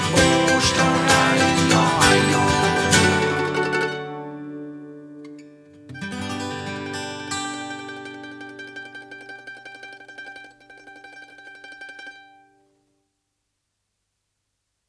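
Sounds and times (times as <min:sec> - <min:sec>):
campfire version karaoke music: 0:00.0 - 0:04.3.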